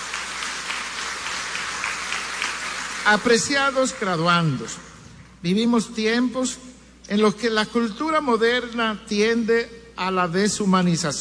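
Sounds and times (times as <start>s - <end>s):
crowd applause: 0.0s - 3.5s
speech: 3.1s - 11.1s.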